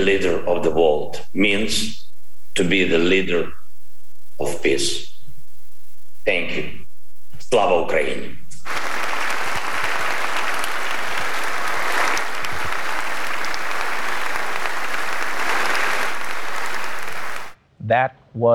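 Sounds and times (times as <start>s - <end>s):
speech: 0.0s - 2.0s, 2.6s - 3.6s, 4.4s - 5.1s, 6.2s - 6.8s, 7.4s - 8.9s, 17.9s - 18.5s
audience applause: 8.6s - 17.6s.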